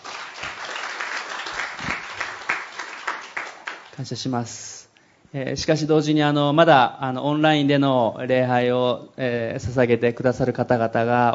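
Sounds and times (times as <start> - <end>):
audience applauding in a chapel: 0.0 - 4.0
speech: 4.0 - 4.7, 5.3 - 11.3.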